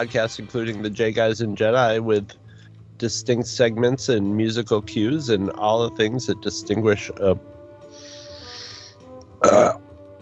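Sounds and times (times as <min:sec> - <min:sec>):
speech: 0:00.0 - 0:02.4, 0:03.0 - 0:07.5, 0:09.4 - 0:09.8
burp: 0:09.4 - 0:09.9.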